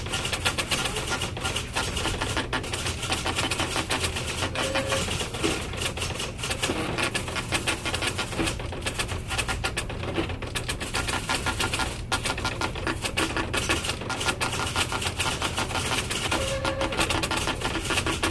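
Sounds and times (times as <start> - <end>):
printers running: 0.0 - 18.3.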